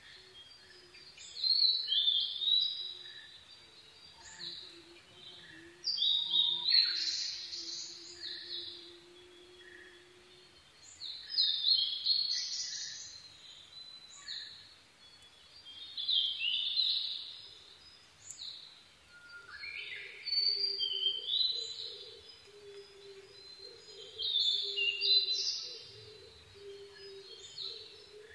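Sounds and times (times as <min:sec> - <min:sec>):
blue-and-white flycatcher song: 0:00.0 - 0:28.3
quieter birds: 0:00.0 - 0:28.3
steady low repeated hooting tone: 0:04.5 - 0:10.7.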